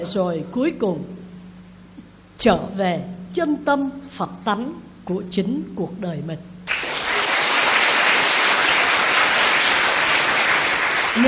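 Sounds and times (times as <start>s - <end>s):
speech: 0.0s - 1.2s, 2.4s - 6.5s
audience applauding at a Buddhist teaching: 6.7s - 11.2s.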